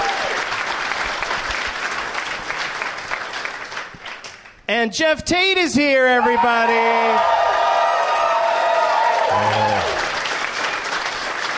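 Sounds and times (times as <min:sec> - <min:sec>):
audience cheering and applause: 0:00.0 - 0:03.8, 0:06.2 - 0:11.5
speech: 0:04.7 - 0:07.4.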